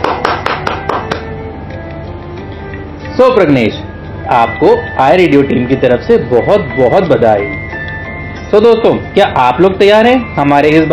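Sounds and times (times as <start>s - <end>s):
applause, loud clapping: 0.0s - 1.3s
speech: 3.2s - 7.6s, 8.5s - 10.9s.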